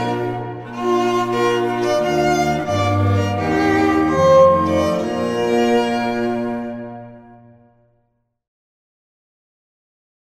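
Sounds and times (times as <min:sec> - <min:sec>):
march music: 0:00.0 - 0:07.5.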